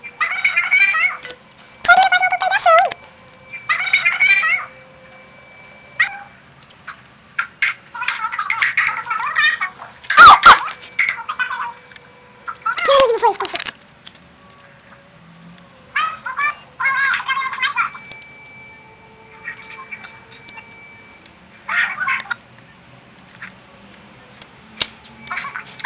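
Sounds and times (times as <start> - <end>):
mobile phone sounds: 0.0 - 13.8, 16.0 - 22.5.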